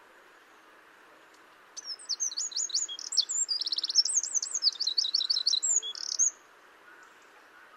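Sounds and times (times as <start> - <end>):
faint background hiss: 0.0 - 7.7
Eurasian wren song: 1.8 - 6.4.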